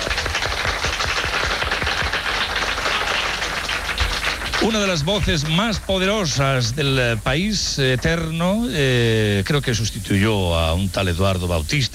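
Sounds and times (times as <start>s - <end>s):
crowd applauding: 0.0s - 8.3s
speech: 4.6s - 11.9s.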